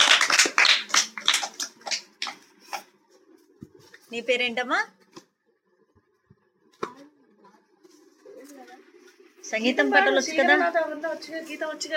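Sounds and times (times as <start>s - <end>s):
small audience clapping for a boy singer: 0.0s - 2.4s
speech: 4.1s - 5.0s, 9.5s - 11.9s.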